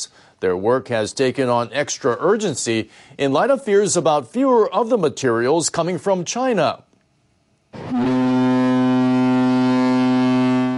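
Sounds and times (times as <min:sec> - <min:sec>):
speech: 0:00.0 - 0:06.9
ship horn of departing drilling ship: 0:07.8 - 0:10.7.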